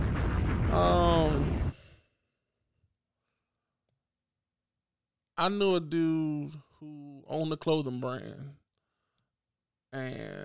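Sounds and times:
bomb drop sound effect: 0.0s - 1.9s
speech: 5.4s - 8.6s, 9.9s - 10.4s.

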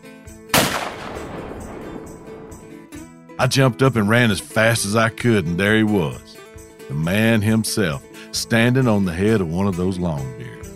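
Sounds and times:
12-gauge shotgun blast: 0.5s - 2.5s
speech: 3.4s - 6.2s, 6.9s - 10.6s.

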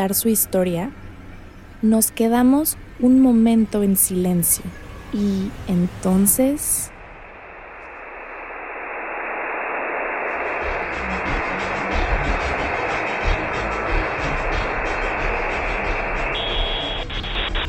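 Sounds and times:
speech: 0.0s - 1.0s, 1.8s - 6.9s
radio static hiss from a radio switching on by itself: 4.0s - 17.6s.

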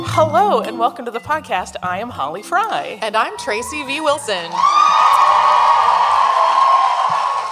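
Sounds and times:
speech: 0.2s - 5.4s
tour audience at a live show cheering and whooping loudly: 3.6s - 7.5s.

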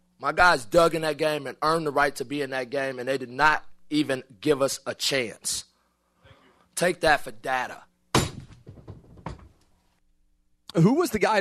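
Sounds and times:
speech: 0.2s - 5.7s, 6.8s - 7.9s, 10.8s - 11.3s
fist slamming down on a table: 8.2s - 9.6s.

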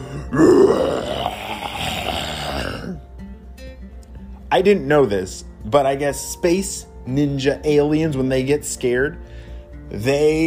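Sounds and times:
voice imitating a ginormous roar: 0.0s - 3.0s
speech: 4.5s - 10.4s.

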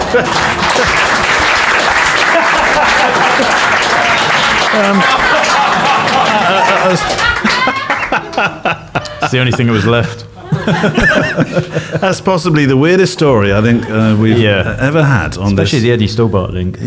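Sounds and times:
round of applause: 0.0s - 8.6s
laughter: 0.0s - 12.4s, 13.2s - 15.0s
speech: 0.1s - 1.2s, 2.8s - 16.8s.

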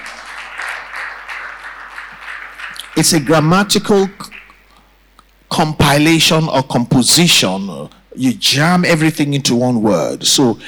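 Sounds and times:
audience clapping: 0.0s - 4.6s
speech: 3.0s - 4.3s, 5.6s - 10.6s.

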